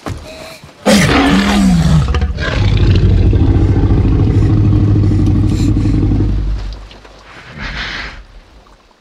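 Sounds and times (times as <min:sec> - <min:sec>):
T-Rex roar sound effect from Jurassic Park: 0:00.9 - 0:06.8.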